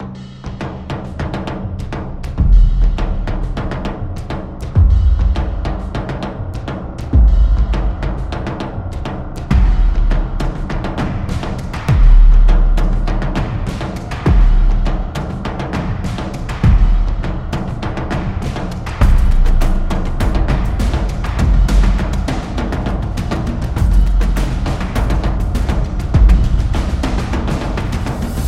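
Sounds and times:
tribal music: 0.0s - 28.4s.

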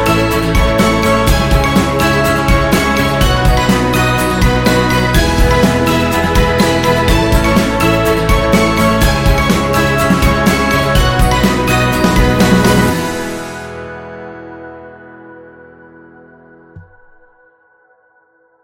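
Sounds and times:
happy folk music: 0.0s - 14.8s.

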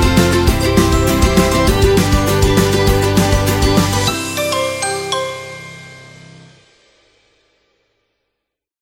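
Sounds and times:
upbeat kids music: 0.0s - 6.6s.

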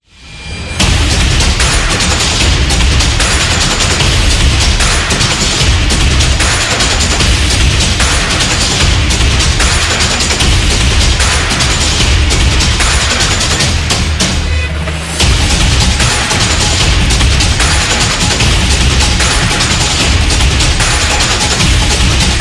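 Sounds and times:
fast war drums: 0.8s - 22.4s.

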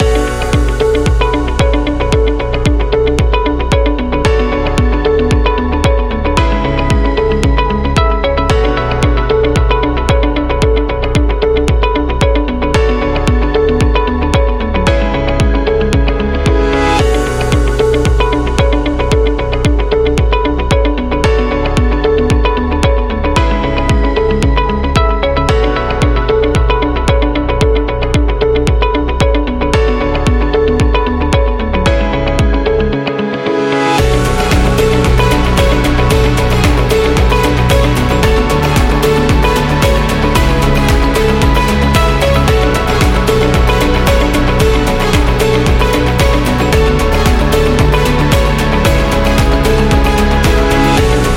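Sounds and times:
medical music loop: 0.0s - 33.3s, 34.0s - 51.3s.

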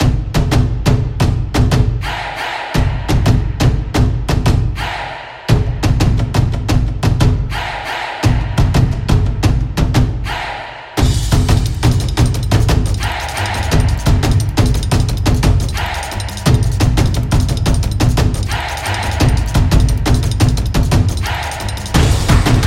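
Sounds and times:
sport drums: 0.0s - 22.6s.

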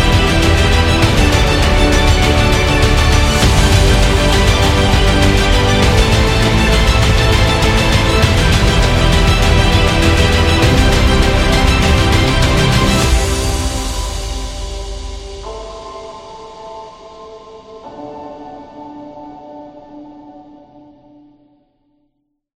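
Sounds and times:
epic corporate music: 0.0s - 16.7s.

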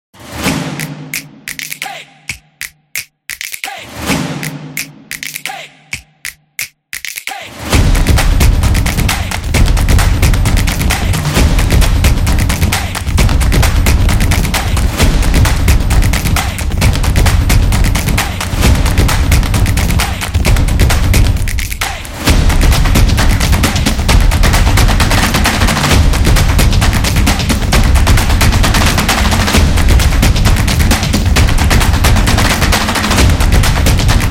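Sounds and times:
dynamic music: 0.2s - 34.2s.

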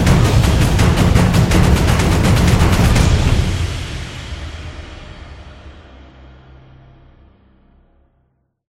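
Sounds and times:
Japanese taiko drums: 0.0s - 5.7s.

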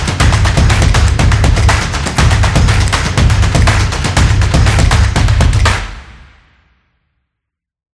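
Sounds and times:
samba drumming solo: 0.0s - 6.2s.

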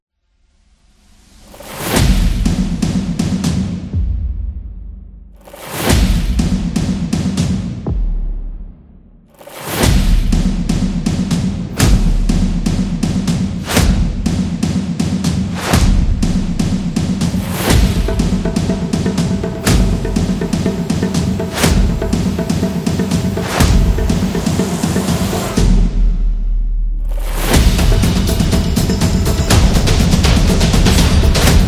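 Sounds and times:
epic drums: 1.4s - 31.6s.

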